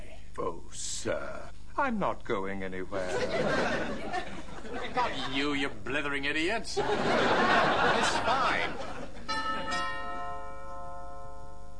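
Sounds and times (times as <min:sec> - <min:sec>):
speech: 0:01.0 - 0:08.9
laughter: 0:03.0 - 0:05.7, 0:06.7 - 0:09.3
doorbell ringing: 0:09.3 - 0:11.7.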